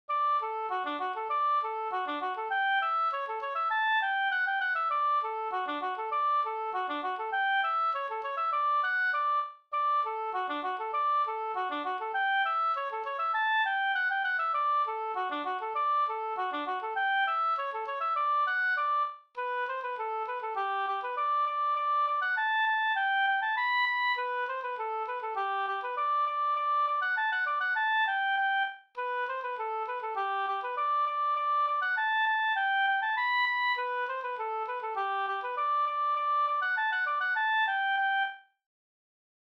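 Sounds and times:
polka music: 0:00.1 - 0:38.4.

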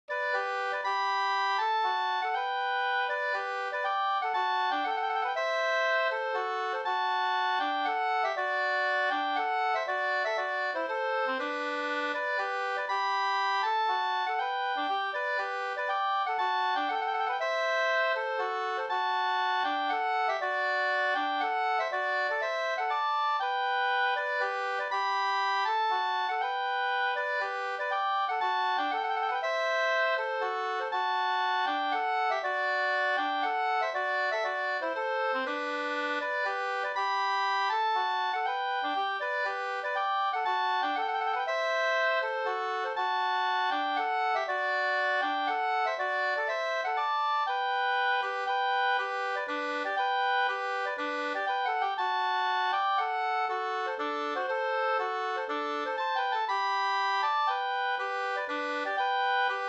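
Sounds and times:
polska folk dance tune: 0:00.1 - 0:59.6.

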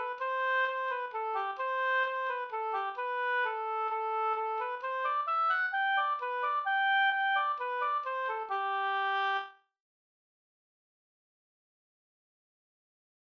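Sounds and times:
waltz in G major: 0:00.1 - 0:09.4.

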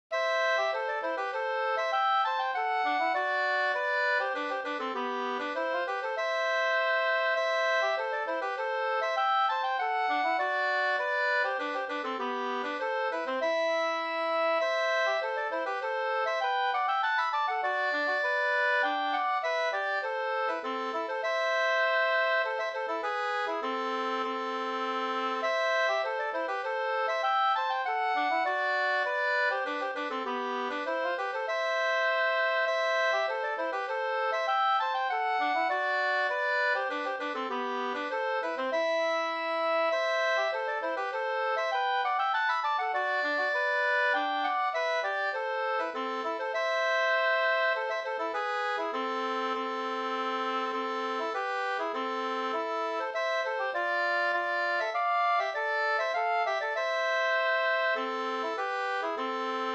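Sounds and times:
Swedish polska folk song: 0:00.2 - 0:59.7.

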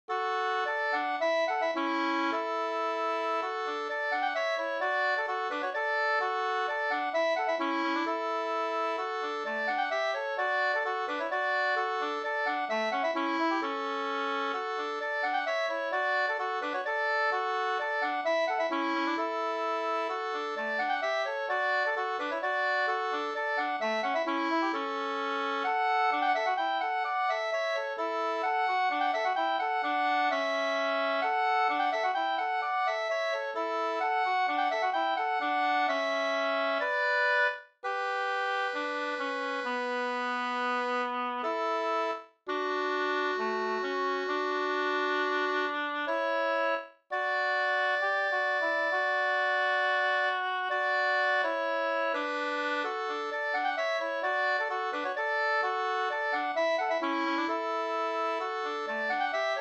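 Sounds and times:
folk dance music: 0:00.2 - 0:59.5.

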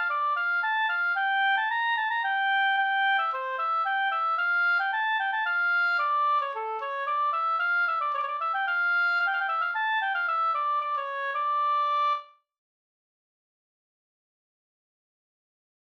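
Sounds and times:
polska folk dance tune: 0:00.0 - 0:12.2.

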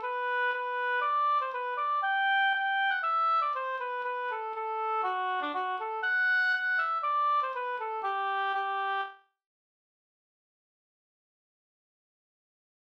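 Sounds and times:
polka music: 0:00.0 - 0:09.2.

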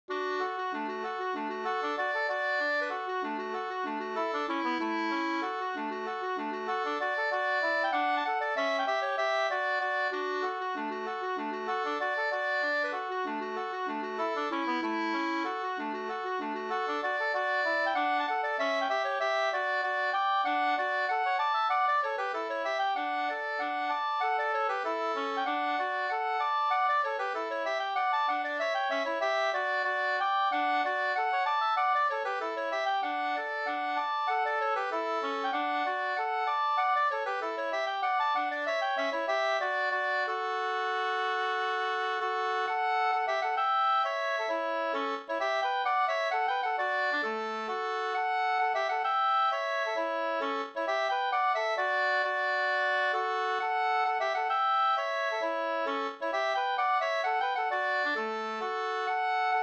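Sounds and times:
Swedish folk dance polska music: 0:00.1 - 0:59.6.

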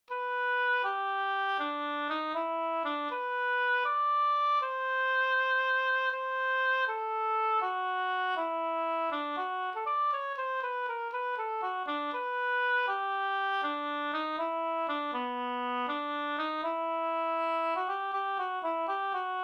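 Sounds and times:
folk dance waltz music: 0:00.3 - 0:19.4.

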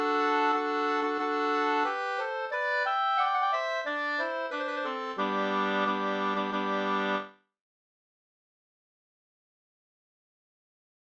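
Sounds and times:
wedding march music: 0:00.0 - 0:07.3.

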